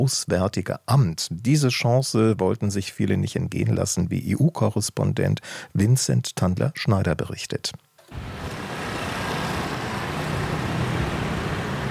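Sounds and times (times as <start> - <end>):
speech: 0.0 - 8.3
rush hour city street traffic in Brussels: 8.1 - 11.8.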